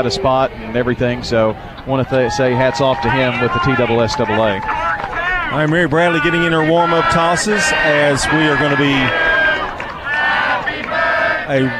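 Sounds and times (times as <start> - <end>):
raucous crowd singing a birthday song: 0.0 - 2.3, 6.1 - 11.7
speech: 0.0 - 4.9, 5.5 - 9.2, 11.5 - 11.7.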